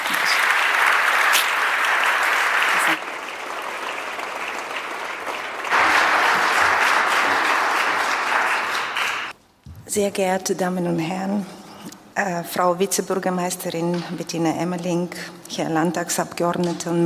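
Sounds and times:
audience applause: 0.0 - 9.3
speech: 10.0 - 11.6, 12.2 - 17.0.

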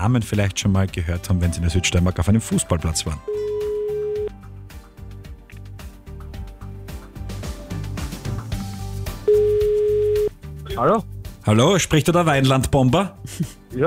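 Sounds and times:
speech: 0.0 - 3.5, 10.8 - 13.8
busy music bed: 0.0 - 13.8
electronic phone ring tones: 3.2 - 4.3, 9.3 - 10.3.

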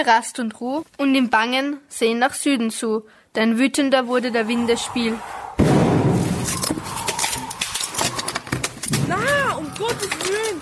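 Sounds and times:
speech: 0.0 - 5.4
explosion: 4.5 - 7.7
debris clattering and clinking: 5.6 - 10.6.

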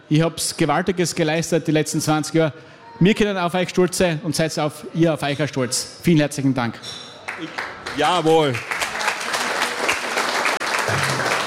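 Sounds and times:
speech: 0.1 - 8.8, 10.9 - 11.3
audience applause: 7.3 - 11.4.

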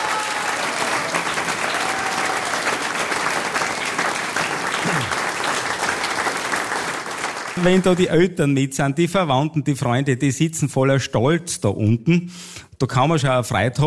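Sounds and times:
audience applause: 0.0 - 8.2
speech: 7.6 - 13.8.

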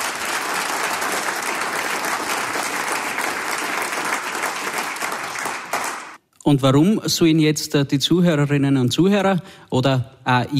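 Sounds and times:
crowd applauding: 0.0 - 6.2
speech: 6.5 - 10.5.

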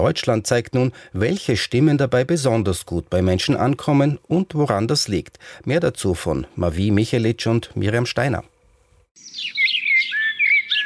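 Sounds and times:
speech: 0.0 - 8.5
bird song: 9.2 - 10.8.

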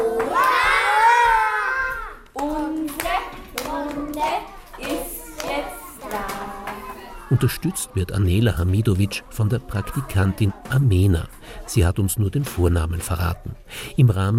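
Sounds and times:
children clapping hands loudly in kindergarten morning circle: 0.0 - 1.2, 2.2 - 6.9
speech: 7.3 - 14.3.

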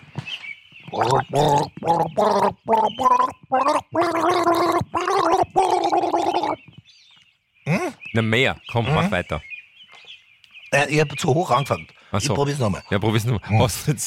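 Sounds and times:
speech: 0.9 - 4.9, 8.2 - 9.5, 10.7 - 14.0
man gargling flower water as a melody: 0.9 - 6.6.

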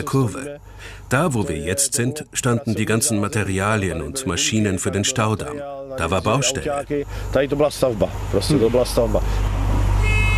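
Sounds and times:
speech: 0.0 - 9.6
steamboat engine rumble: 0.0 - 10.3
steamboat horn signalling departure: 9.9 - 10.3.

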